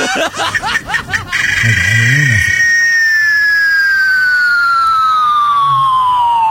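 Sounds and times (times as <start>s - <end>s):
laughter: 0.0s - 1.8s
cicada singing: 0.6s - 6.4s.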